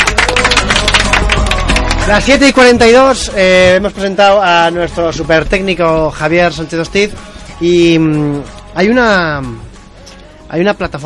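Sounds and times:
team applause in studio: 0.0s - 2.6s
speech: 2.1s - 9.7s, 10.5s - 11.0s.

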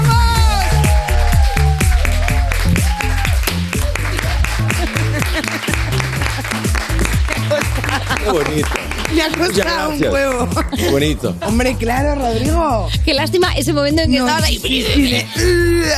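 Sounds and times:
upbeat band music: 0.0s - 15.9s
audience applause: 0.5s - 11.1s
laughter: 3.9s - 12.7s, 14.4s - 15.9s
speech: 8.4s - 15.9s.

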